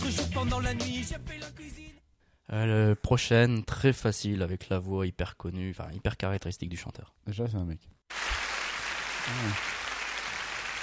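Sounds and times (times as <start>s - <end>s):
speech: 0.4s - 8.4s, 9.2s - 9.8s
applause: 8.1s - 10.8s.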